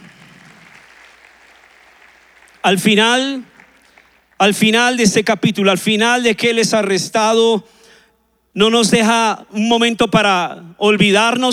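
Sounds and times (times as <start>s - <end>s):
audience applause: 0.0s - 4.6s
speech: 2.6s - 3.5s, 4.4s - 7.8s, 8.5s - 11.5s.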